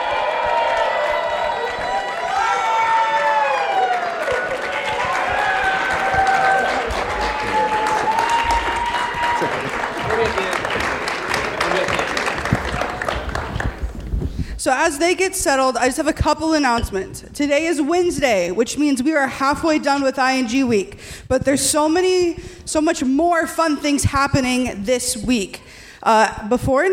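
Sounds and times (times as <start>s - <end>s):
audience applauding at a North Central University chapel service: 0.0s - 14.4s
speech: 14.7s - 26.9s.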